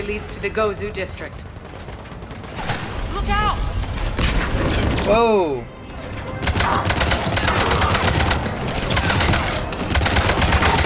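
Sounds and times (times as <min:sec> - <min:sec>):
speech: 0:00.0 - 0:01.6, 0:03.2 - 0:03.8, 0:04.6 - 0:05.8, 0:06.6 - 0:07.1
rapid video game gunfire in a battle against Cerberus operatives and a tank: 0:01.3 - 0:03.1, 0:06.4 - 0:10.8.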